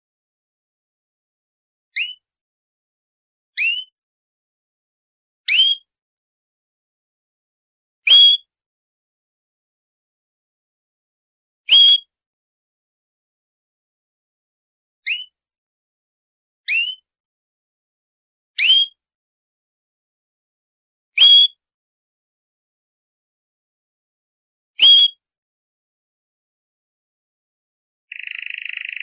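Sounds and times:
canary song in rapid rolling tours: 2.0s - 2.2s, 3.6s - 4.0s, 5.5s - 5.9s, 8.1s - 8.5s, 11.7s - 12.1s, 15.0s - 15.4s, 16.7s - 17.0s, 18.6s - 19.0s, 21.2s - 21.6s, 24.8s - 25.2s, 28.1s - 29.0s.

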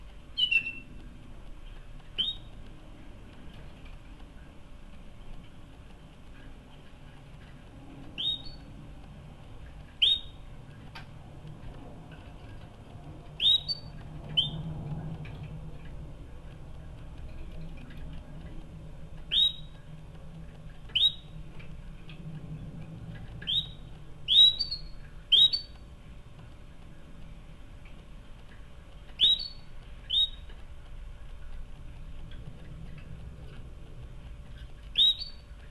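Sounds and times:
low hum: 0.0s - 35.6s
canary chirping: 0.4s - 0.9s, 2.2s - 2.6s, 8.2s - 8.7s, 10.0s - 10.4s, 13.4s - 14.6s, 19.3s - 19.8s, 20.9s - 21.4s, 23.4s - 25.8s, 29.2s - 30.5s, 34.9s - 35.5s.

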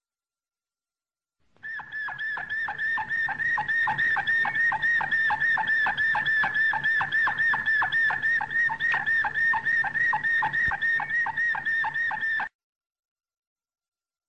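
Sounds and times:
canary song of whistled notes: 1.6s - 12.5s.

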